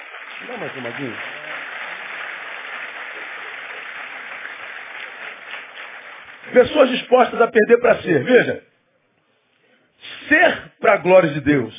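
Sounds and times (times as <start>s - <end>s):
audience applauding: 0.0s - 7.4s
speech: 0.4s - 1.4s, 6.5s - 8.7s, 10.3s - 11.7s.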